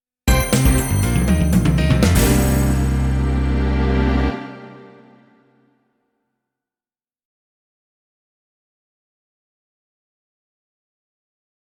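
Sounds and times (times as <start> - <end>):
jingle: 0.3 - 5.6.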